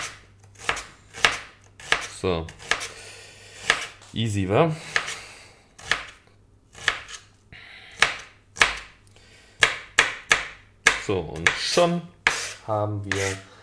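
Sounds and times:
knife dicing an onion on board: 0.0s - 2.9s, 3.6s - 4.0s, 4.9s - 5.2s, 5.8s - 7.2s, 7.9s - 8.9s, 9.6s - 13.4s
speech: 2.2s - 2.6s, 4.2s - 4.9s, 11.1s - 13.5s.

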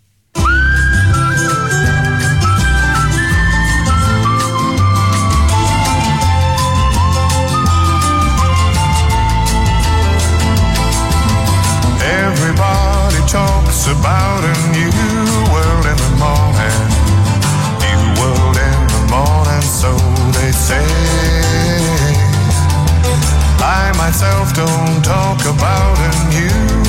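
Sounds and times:
band accompaniment with bass and percussion: 0.4s - 26.8s
whistled melody at the start of a song: 0.4s - 26.8s.

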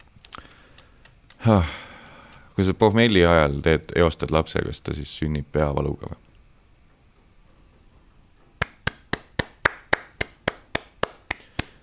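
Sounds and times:
speech: 1.4s - 1.8s, 2.6s - 6.2s
slow applause from a single pair of hands: 8.6s - 11.8s.

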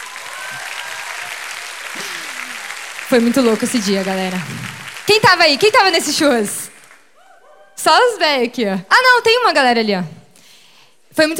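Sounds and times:
audience applause: 0.0s - 7.2s
speech: 3.1s - 6.6s, 7.8s - 10.2s, 11.2s - 11.3s.

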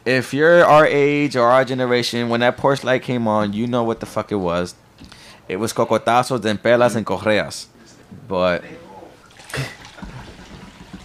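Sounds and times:
speech: 0.0s - 4.8s, 5.5s - 8.8s, 9.6s - 9.8s
drink being poured: 9.2s - 11.0s.

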